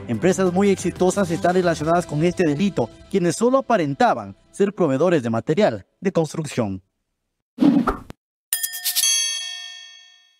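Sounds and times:
speech: 0.1 - 6.9
bell-like ding used as a censorship tone: 8.5 - 10.3.

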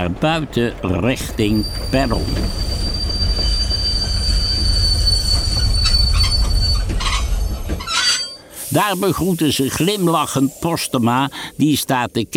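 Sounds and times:
speech: 0.0 - 2.7, 8.7 - 12.3
hissing brake noise: 0.0 - 11.8
arriving train rumbling: 0.0 - 12.1
high metallic wheel squeal: 0.4 - 8.5.

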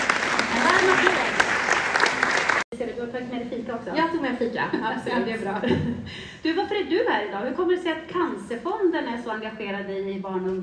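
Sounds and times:
audience applause: 0.0 - 2.7
speech: 2.8 - 10.6.

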